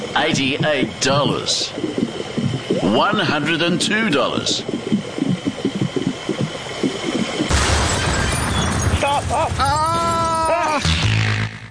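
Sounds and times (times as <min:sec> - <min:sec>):
rhythmic mid-pitched pumping whooshes: 0:00.0 - 0:08.2
speech: 0:00.2 - 0:02.1, 0:02.9 - 0:05.0, 0:09.1 - 0:11.1
game show explosion boom effect: 0:07.4 - 0:10.0.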